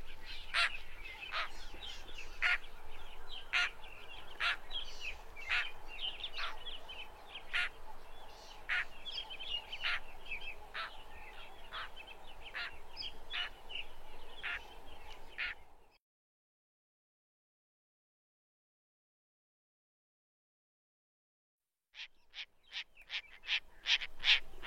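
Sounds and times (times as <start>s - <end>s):
lilac-breasted roller singing: 0.0s - 16.0s, 22.0s - 24.6s.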